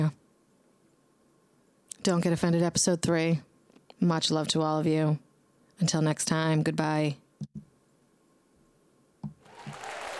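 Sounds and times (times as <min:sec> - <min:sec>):
speech: 0:02.0 - 0:05.2, 0:05.8 - 0:07.6
applause sound effect: 0:09.4 - 0:10.1.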